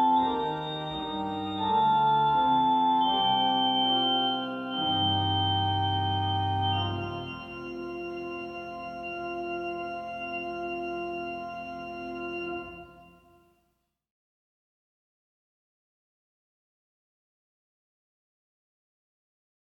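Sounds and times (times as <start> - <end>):
short chorale preludes: 0.0 - 13.5.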